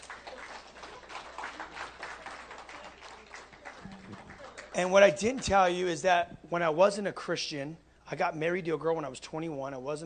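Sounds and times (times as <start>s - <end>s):
audience applause: 0.0s - 5.5s
speech: 4.8s - 10.0s.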